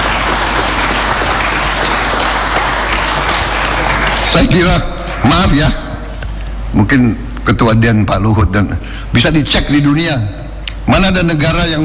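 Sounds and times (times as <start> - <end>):
crowd applause: 0.0 - 6.2
speech: 4.3 - 5.8, 6.7 - 11.8.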